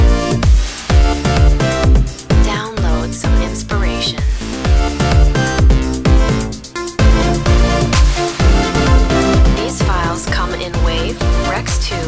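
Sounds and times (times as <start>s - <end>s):
house music: 0.0s - 12.0s
voice: 2.4s - 4.3s, 8.7s - 12.0s.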